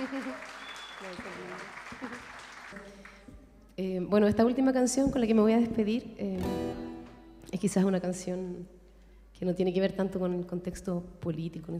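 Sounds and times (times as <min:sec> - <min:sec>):
audience applause: 0:00.0 - 0:03.3
speech: 0:00.1 - 0:02.2, 0:03.8 - 0:06.6, 0:07.6 - 0:08.8, 0:09.4 - 0:11.7.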